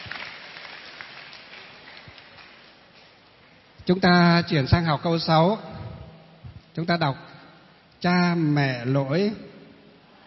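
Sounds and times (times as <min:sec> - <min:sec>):
classroom applause: 0:00.0 - 0:02.8
speech: 0:03.9 - 0:05.7, 0:06.8 - 0:07.3, 0:08.0 - 0:09.5.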